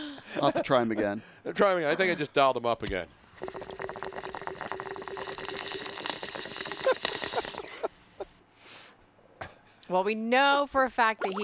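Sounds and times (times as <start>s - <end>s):
speech: 0.4s - 3.6s, 9.9s - 11.4s
running water in nature: 11.1s - 11.4s.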